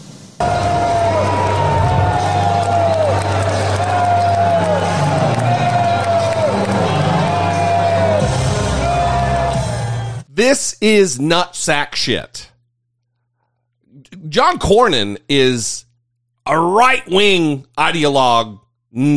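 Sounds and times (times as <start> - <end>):
crowd booing: 0.4 - 10.3
speech: 10.4 - 12.5, 14.3 - 15.8, 16.5 - 19.1.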